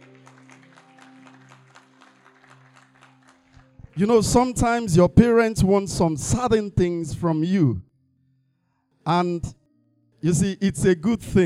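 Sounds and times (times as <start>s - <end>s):
audience clapping: 0.0s - 4.8s
speech: 4.0s - 7.9s, 9.0s - 9.6s, 10.2s - 11.4s.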